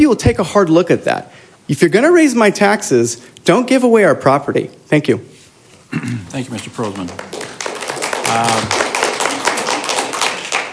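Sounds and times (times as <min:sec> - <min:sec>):
speech: 0:00.0 - 0:05.3, 0:05.9 - 0:07.4, 0:08.3 - 0:08.8
audience clapping: 0:06.4 - 0:10.7.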